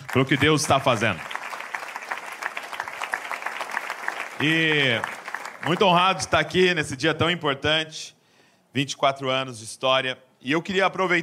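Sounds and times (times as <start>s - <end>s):
audience applause: 0.0s - 6.3s
speech: 0.1s - 1.3s, 4.4s - 11.2s.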